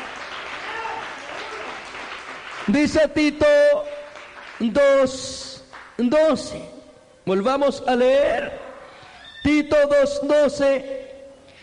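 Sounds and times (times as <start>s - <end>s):
church congregation applauding at a morning service: 0.0s - 6.5s
speech: 2.7s - 3.9s, 4.6s - 8.6s, 9.5s - 11.0s.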